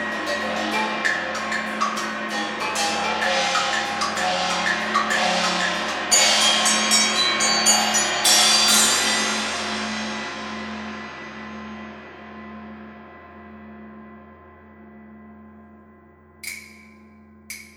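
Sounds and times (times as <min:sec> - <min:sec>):
marimba: 0:00.0 - 0:09.2
bells: 0:00.0 - 0:10.8, 0:16.4 - 0:17.7.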